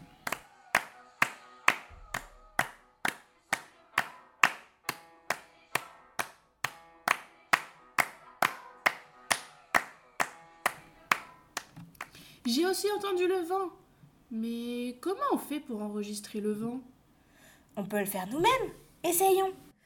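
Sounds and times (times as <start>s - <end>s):
rhythmic hand clapping to a fast pulse: 0.0s - 12.2s
speech: 12.5s - 16.9s, 17.8s - 19.6s.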